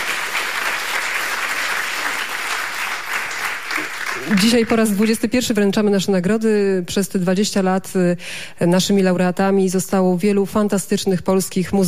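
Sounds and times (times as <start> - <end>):
audience applause: 0.0 - 5.0
speech: 4.2 - 11.8.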